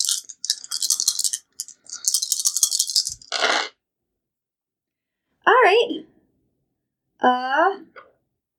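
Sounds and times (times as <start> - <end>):
eight-sided dice rattling in a cupped hand: 0.0 - 3.4
speech: 7.2 - 8.0.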